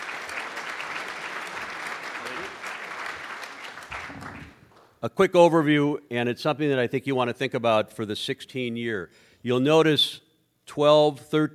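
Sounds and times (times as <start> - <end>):
audience applause: 0.0 - 4.8
speech: 5.0 - 11.5.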